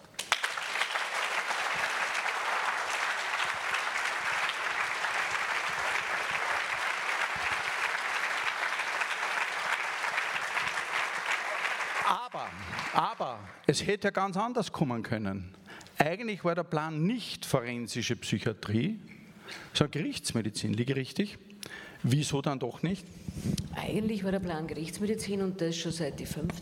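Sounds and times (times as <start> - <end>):
audience applause: 0.0 - 13.7
speech: 13.7 - 21.4, 22.0 - 26.5.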